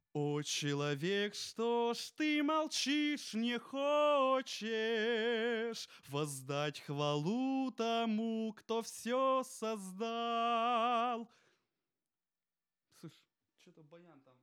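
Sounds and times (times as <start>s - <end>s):
vocals: 0.1s - 11.5s.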